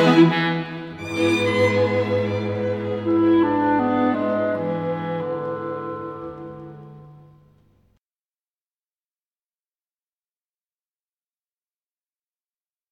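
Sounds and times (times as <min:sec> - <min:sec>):
classical clarinet piece movement: 0:00.0 - 0:07.7.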